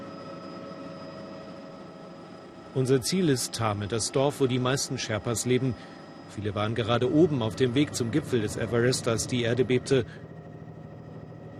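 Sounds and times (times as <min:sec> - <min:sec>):
aircraft flying high over the Himalaya past Mount Everest: 0:00.0 - 0:11.5
speech: 0:02.8 - 0:10.3.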